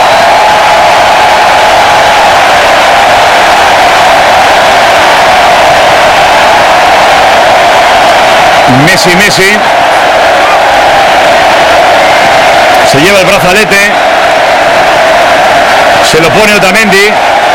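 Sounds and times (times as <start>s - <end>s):
huge stadium crowd ovation: 0.0s - 17.5s
speech: 8.8s - 9.8s, 12.9s - 14.1s, 16.1s - 17.4s.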